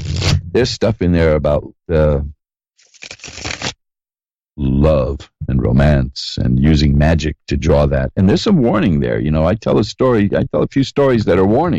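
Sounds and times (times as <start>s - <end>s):
speech: 0.6s - 2.4s, 4.6s - 11.7s
magician's playing cards riffle shuffled: 2.8s - 3.8s.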